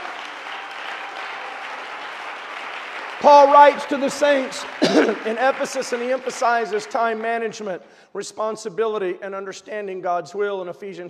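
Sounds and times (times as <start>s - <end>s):
audience clapping: 0.0s - 7.8s
speech: 3.2s - 11.0s.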